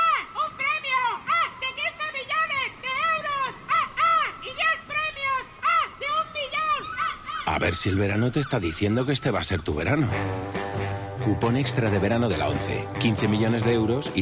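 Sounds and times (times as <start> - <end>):
seagulls calling by the sea: 0.0 - 10.8
speech: 7.6 - 14.2.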